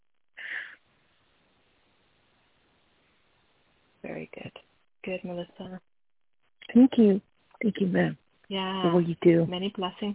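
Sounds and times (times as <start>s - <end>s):
deep breath during a guided healing session: 0.4s - 0.8s
speech: 4.1s - 5.9s, 6.7s - 10.1s.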